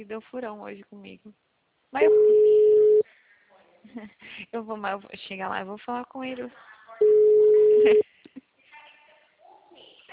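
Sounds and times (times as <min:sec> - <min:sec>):
speech: 0:00.0 - 0:02.6, 0:03.8 - 0:08.0
telephone call tone from an outgoing call: 0:02.0 - 0:03.0, 0:07.0 - 0:08.0.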